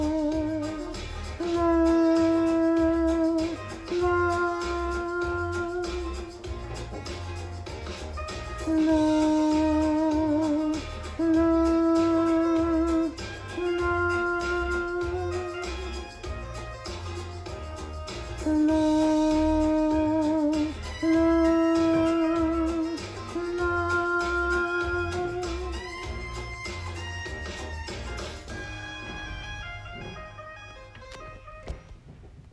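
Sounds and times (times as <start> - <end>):
voice: 0.0 - 6.2, 8.6 - 15.6, 18.4 - 25.8.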